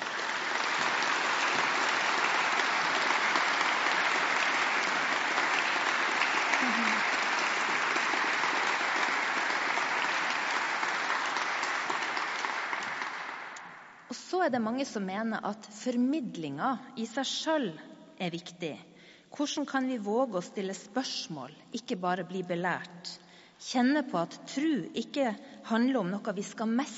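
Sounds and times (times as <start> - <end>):
audience applause: 0.0 - 13.8
speech: 14.4 - 26.9.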